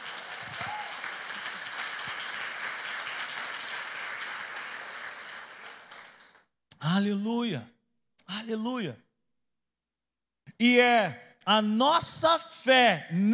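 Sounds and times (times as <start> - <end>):
audience applause: 0.0 - 6.4
speech: 6.9 - 7.7, 8.3 - 9.0, 10.6 - 13.3.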